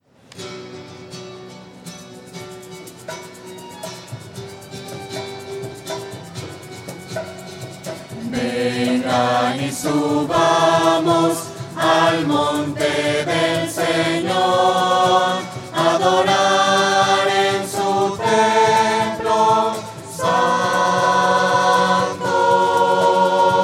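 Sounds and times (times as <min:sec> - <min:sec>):
voices singing: 0:07.9 - 0:23.6.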